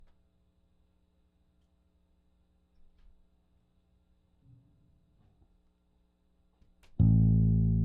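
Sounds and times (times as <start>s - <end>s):
bass through amp: 7.0s - 7.8s.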